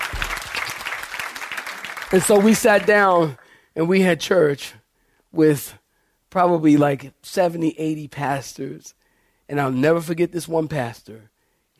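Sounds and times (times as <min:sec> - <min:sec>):
audience clapping: 0:00.0 - 0:03.4
speech: 0:02.1 - 0:11.7.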